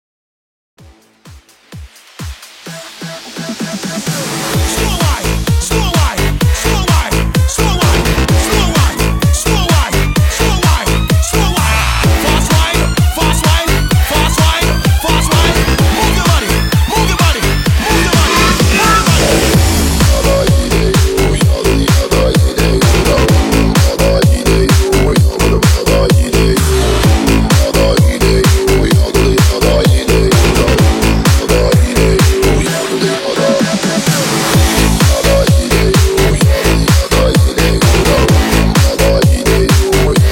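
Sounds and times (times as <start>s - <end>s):
dancehall music at 128 BPM: 0.8s - 40.3s.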